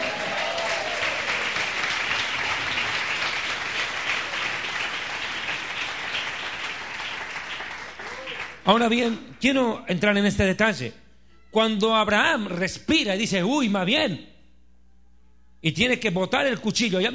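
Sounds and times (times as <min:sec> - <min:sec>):
audience applauding: 0:00.0 - 0:09.0
speech: 0:08.7 - 0:11.0, 0:11.6 - 0:14.3, 0:15.6 - 0:17.1.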